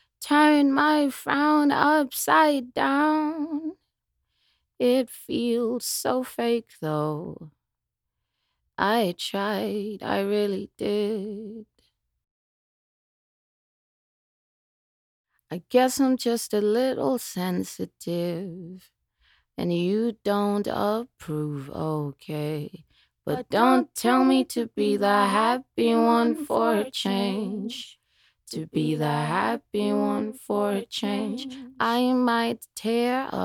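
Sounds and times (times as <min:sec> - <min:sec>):
a cappella jazz blues singing in E-flat minor at 120 bpm: 0:00.2 - 0:03.8, 0:04.8 - 0:07.5, 0:08.8 - 0:11.6, 0:15.5 - 0:18.9, 0:19.6 - 0:33.4.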